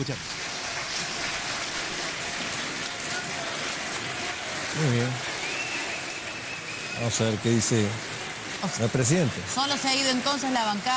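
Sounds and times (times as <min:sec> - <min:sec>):
speech: 0:00.0 - 0:00.3, 0:04.7 - 0:05.3, 0:07.0 - 0:10.9
applause in parliament chamber: 0:00.0 - 0:08.2.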